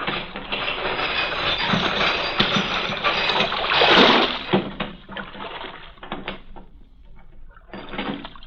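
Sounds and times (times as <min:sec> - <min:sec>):
harbor chain that closes the port mouth being lowered: 0:00.0 - 0:05.1, 0:06.0 - 0:08.4.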